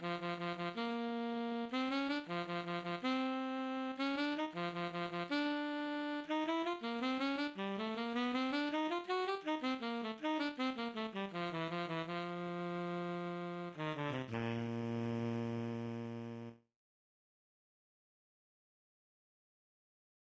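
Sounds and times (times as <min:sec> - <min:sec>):
tenor sax: 0:00.0 - 0:16.7.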